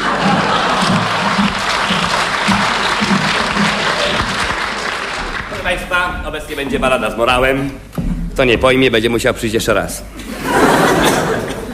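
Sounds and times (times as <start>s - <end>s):
laughter: 0.0s - 4.6s, 10.1s - 11.7s
audience clapping: 0.0s - 6.4s
speech: 6.0s - 10.8s.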